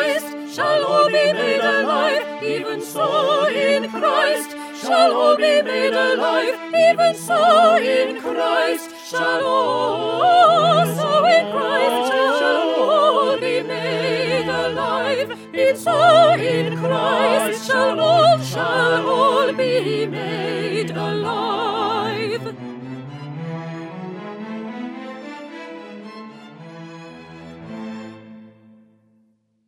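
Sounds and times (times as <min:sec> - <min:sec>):
soprano singing: 0:00.0 - 0:22.8.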